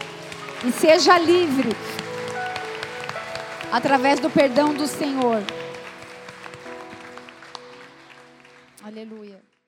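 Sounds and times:
audience applause: 0.0s - 9.4s
speech: 0.6s - 2.0s, 3.7s - 5.6s, 8.9s - 9.5s.

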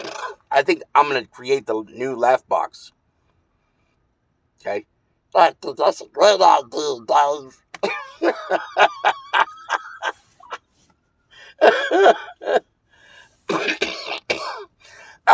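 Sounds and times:
coughing: 0.0s - 0.5s, 7.8s - 10.1s, 11.6s - 12.7s, 13.5s - 15.3s
speech: 0.6s - 3.0s, 4.6s - 9.2s, 11.6s - 12.7s
laughter: 8.2s - 10.6s.

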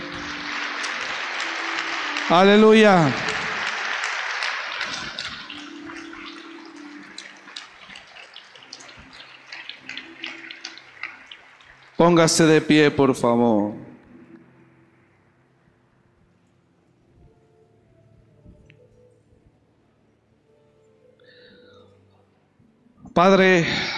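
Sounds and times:
audience applause: 0.0s - 12.0s
speech: 2.3s - 3.3s, 12.0s - 13.9s, 23.2s - 23.9s.

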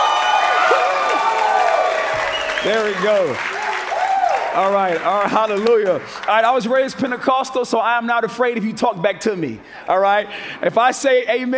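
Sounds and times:
church audience cheering and whooping: 0.0s - 5.0s
church audience applause: 0.0s - 6.9s
speech: 2.6s - 3.6s, 4.5s - 11.5s.

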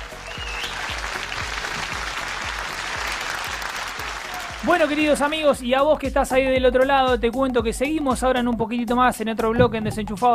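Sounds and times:
crowd applauding: 0.0s - 5.6s
speech: 4.6s - 10.3s.

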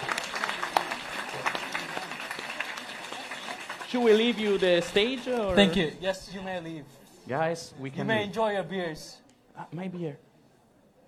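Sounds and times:
audience applause: 0.0s - 5.9s
speech: 3.9s - 10.3s.

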